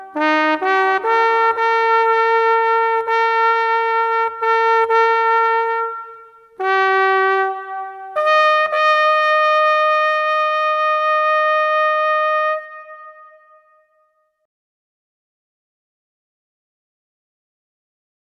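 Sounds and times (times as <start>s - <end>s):
trumpet call: 0.0s - 13.9s.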